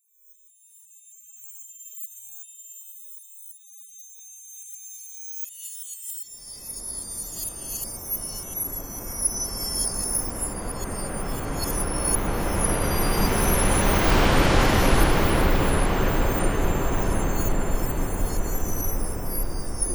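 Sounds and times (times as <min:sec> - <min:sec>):
rain: 0:09.1 - 0:19.8.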